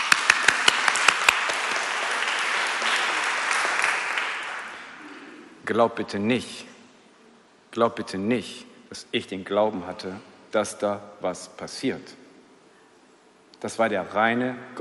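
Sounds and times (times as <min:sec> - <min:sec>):
audience applause: 0:00.0 - 0:05.0
speech: 0:05.7 - 0:06.7, 0:07.7 - 0:12.2, 0:13.6 - 0:14.8.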